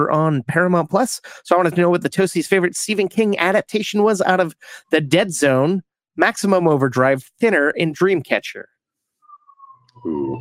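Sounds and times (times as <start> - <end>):
speech: 0.0 - 8.8, 10.0 - 10.3
siren in the background: 9.2 - 10.3.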